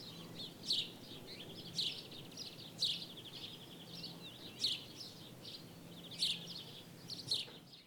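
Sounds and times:
birds calling with sharp high chirps: 0.0 - 7.8.

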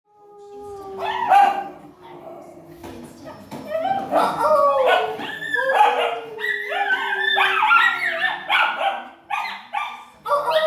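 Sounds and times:
Schnauzers howling together: 0.1 - 1.8, 3.7 - 9.1.

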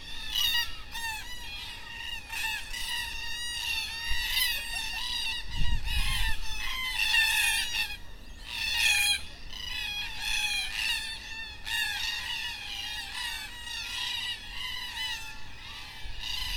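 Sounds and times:
black cockatoos calling at dusk in Perth: 0.0 - 16.5.

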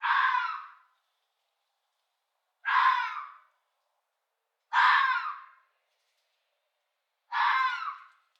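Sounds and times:
fox hoarse strained mating screams: 0.0 - 0.8, 2.6 - 3.4, 4.7 - 5.5, 7.3 - 8.1.

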